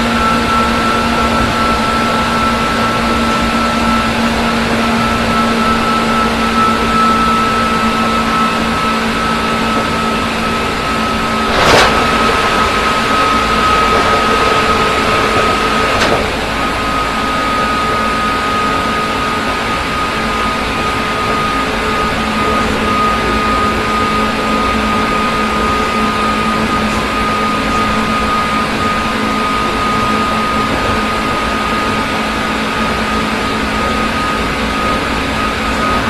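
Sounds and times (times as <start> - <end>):
103 series rapid train: 0.0 - 36.0.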